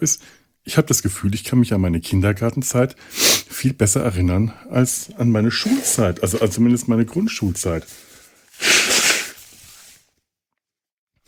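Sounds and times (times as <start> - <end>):
speech: 0.0 - 8.8
harsh cough: 5.6 - 6.6.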